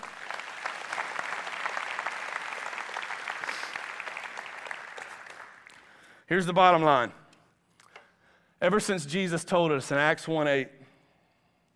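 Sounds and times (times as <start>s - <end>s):
round of applause: 0.0s - 6.1s
speech: 6.3s - 7.2s, 8.6s - 10.8s.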